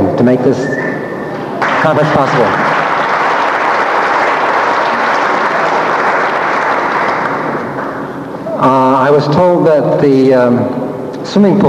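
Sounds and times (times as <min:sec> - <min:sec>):
speech: 0:00.2 - 0:00.8, 0:01.8 - 0:02.7, 0:08.6 - 0:11.6
large audience applause: 0:01.5 - 0:08.2.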